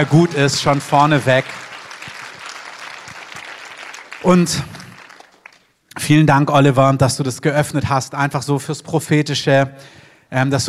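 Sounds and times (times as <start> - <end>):
speech: 0.0 - 1.7, 4.2 - 4.8, 6.0 - 10.6
audience applause: 0.0 - 5.7.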